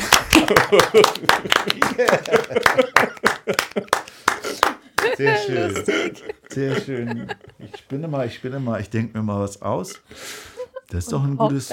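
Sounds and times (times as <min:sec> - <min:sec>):
applause: 0:00.0 - 0:05.2
laughter: 0:00.0 - 0:09.1
speech: 0:00.5 - 0:11.7.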